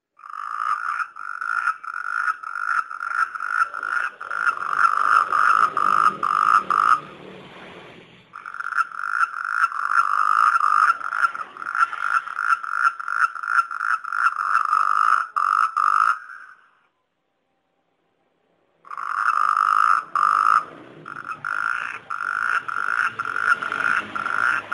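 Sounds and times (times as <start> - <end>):
funny frog sound: 0.2 - 7.1, 8.4 - 16.8, 18.9 - 24.7.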